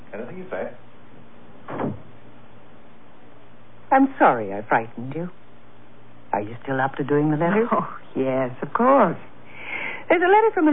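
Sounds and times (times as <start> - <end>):
speech: 0.1 - 0.9, 3.9 - 5.4, 6.3 - 9.3, 10.1 - 10.7
door closing indoors: 1.6 - 2.2.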